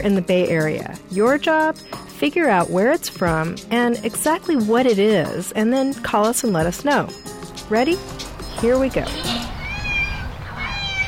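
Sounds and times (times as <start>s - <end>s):
speech: 0.0s - 9.5s
young goats bleating: 9.0s - 11.0s.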